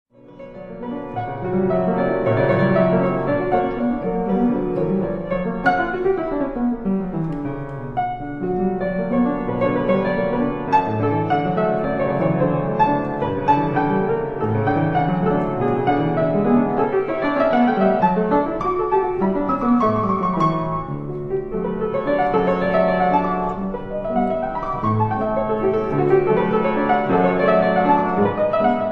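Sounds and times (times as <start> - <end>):
piano etude in B minor: 0.1 - 28.9.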